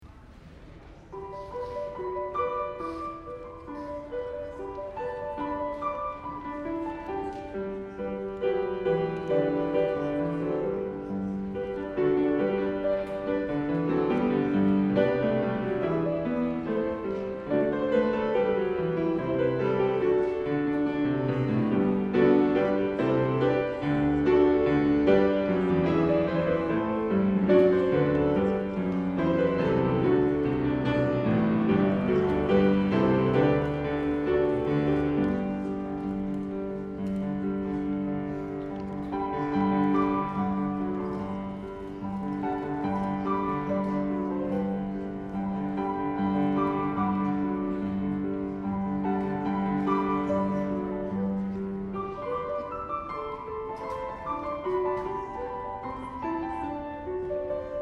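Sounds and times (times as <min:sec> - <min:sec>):
piano: 0:00.0 - 0:57.7.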